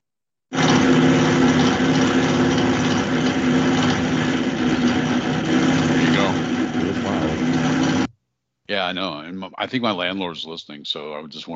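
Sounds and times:
faulty microwave oven running: 0:00.6 - 0:08.1
speech: 0:08.8 - 0:11.5.

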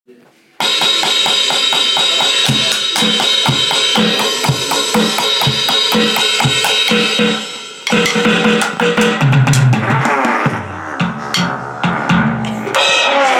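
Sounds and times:
drum composition: 0:00.6 - 0:13.3.

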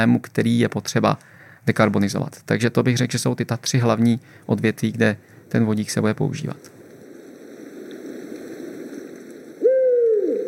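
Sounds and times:
speech: 0:00.0 - 0:06.8
Eurasian eagle-owl Bubo bubo hooting: 0:09.5 - 0:10.4.

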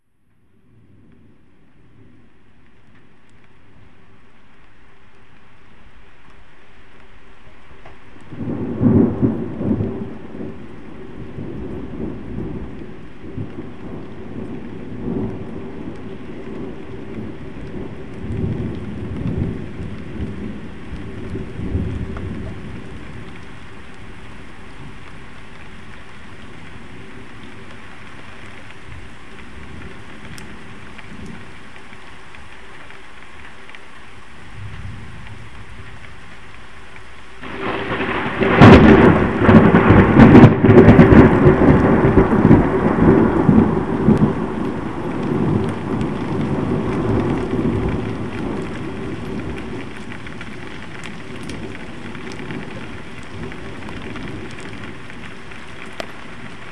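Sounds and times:
thunder: 0:08.3 - 0:23.5, 0:37.4 - 0:56.6.

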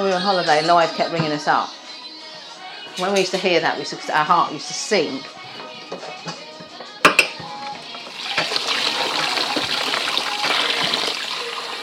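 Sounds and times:
speech: 0:00.0 - 0:01.8, 0:03.0 - 0:05.7
water sloshing in a running dishwasher: 0:08.0 - 0:11.8.

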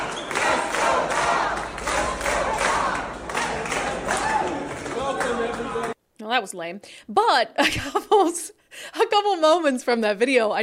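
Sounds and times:
crowd cheering: 0:00.0 - 0:06.0
speech: 0:06.4 - 0:10.6.

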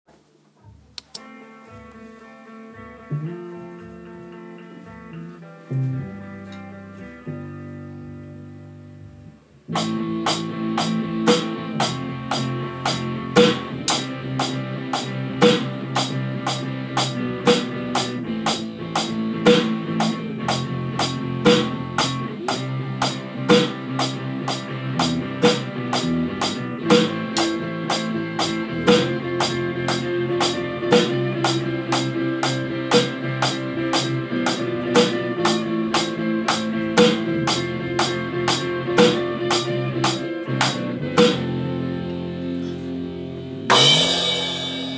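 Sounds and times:
drums in four-four time: 0:00.1 - 0:44.9.

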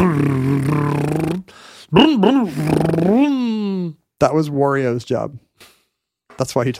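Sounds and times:
voice imitating car motor noise: 0:00.0 - 0:01.4, 0:02.0 - 0:03.9
speech: 0:01.9 - 0:03.4, 0:04.2 - 0:05.7, 0:06.4 - 0:06.7.

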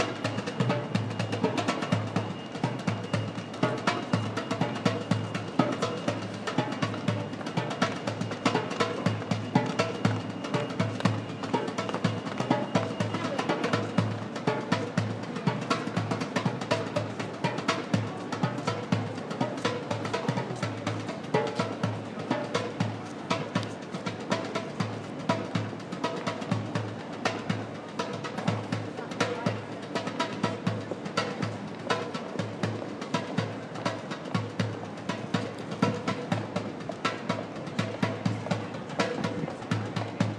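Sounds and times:
drumming in the street in Manchester: 0:00.0 - 0:40.3.

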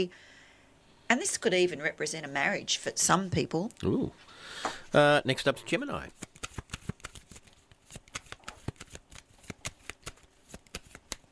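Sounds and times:
speech: 0:00.0 - 0:00.3, 0:01.1 - 0:06.3
tarot cards being shuffled and drawn: 0:06.0 - 0:11.3.

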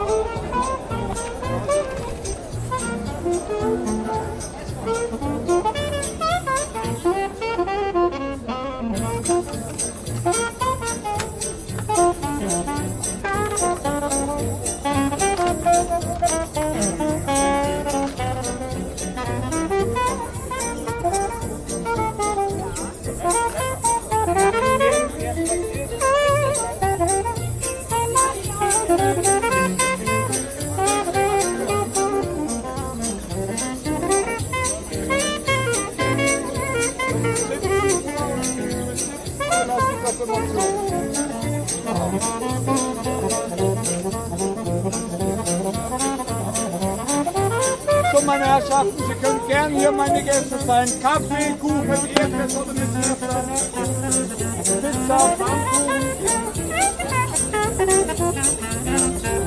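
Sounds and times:
street music in Berlin Mitte: 0:00.0 - 0:59.4.

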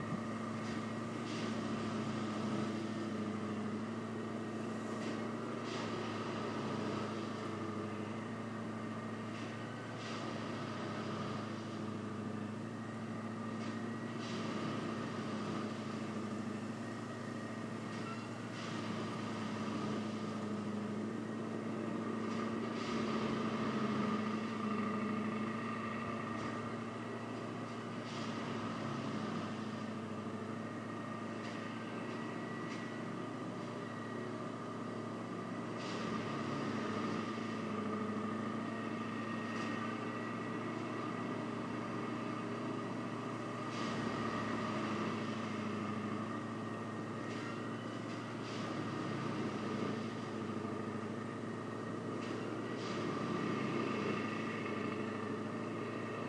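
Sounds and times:
sounds outside a house at night: 0:00.0 - 0:56.2.

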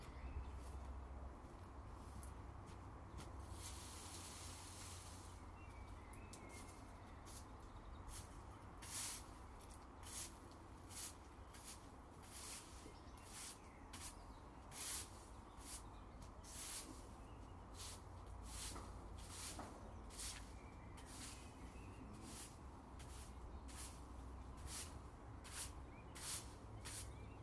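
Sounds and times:
garden raking: 0:00.1 - 0:27.4
brushing in a garden: 0:03.4 - 0:05.5, 0:08.1 - 0:27.2.

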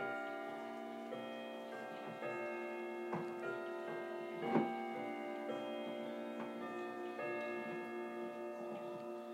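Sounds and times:
clock chiming: 0:00.0 - 0:09.3
knock: 0:04.4 - 0:04.7.

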